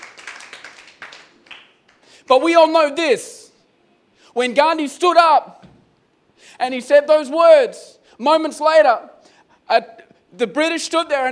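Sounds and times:
audience clapping: 0:00.0 - 0:02.1
speech: 0:02.3 - 0:03.4, 0:04.4 - 0:05.7, 0:06.4 - 0:11.3.

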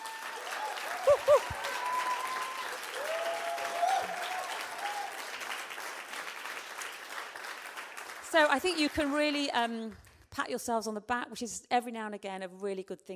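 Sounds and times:
church audience applause: 0:00.0 - 0:09.5
speech: 0:08.4 - 0:13.1.

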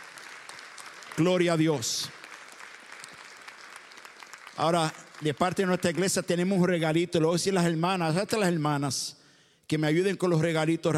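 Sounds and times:
audience applause: 0:00.0 - 0:06.0
speech: 0:01.2 - 0:02.2, 0:04.6 - 0:10.9.

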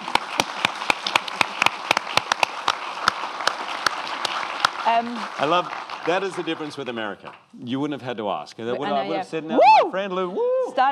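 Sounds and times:
audience round of applause: 0:00.0 - 0:07.9
speech: 0:04.9 - 0:10.8.

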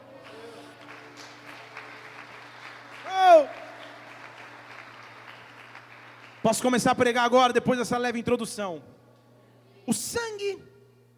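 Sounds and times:
audience clapping: 0:00.0 - 0:07.4
constant low electrical hum: 0:00.0 - 0:11.1
speech: 0:06.4 - 0:08.9, 0:10.3 - 0:10.7.

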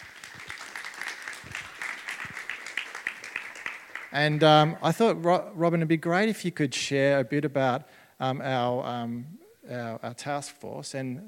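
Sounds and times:
audience applause: 0:00.0 - 0:04.4
speech: 0:04.1 - 0:11.2.

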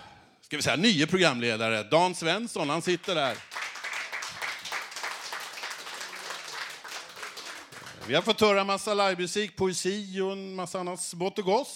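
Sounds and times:
speech: 0:00.5 - 0:03.5, 0:08.1 - 0:11.7
audience applause: 0:03.0 - 0:08.4.

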